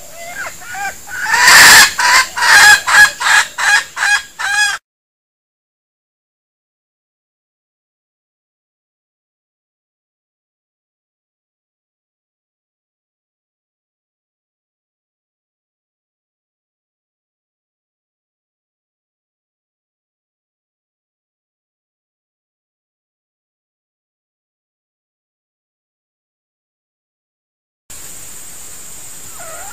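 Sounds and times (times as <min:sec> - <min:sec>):
female junglefowl decoy bird squeaking and clucking: 0:00.0 - 0:04.8, 0:29.2 - 0:29.7.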